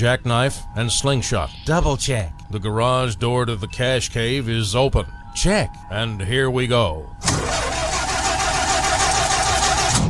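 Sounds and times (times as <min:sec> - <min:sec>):
speech: 0:00.0 - 0:07.5
car engine cranking but failing to start: 0:07.2 - 0:10.0.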